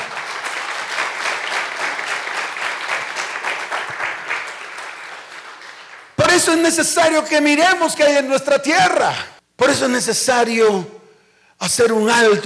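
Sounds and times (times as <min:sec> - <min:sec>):
audience applause: 0:00.0 - 0:06.2
speech: 0:06.4 - 0:11.0, 0:11.6 - 0:12.4.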